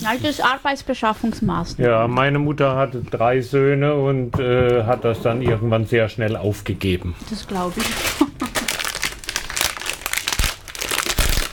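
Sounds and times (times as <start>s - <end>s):
speech: 0.0s - 8.3s
underwear fabric crinkling: 7.3s - 11.5s.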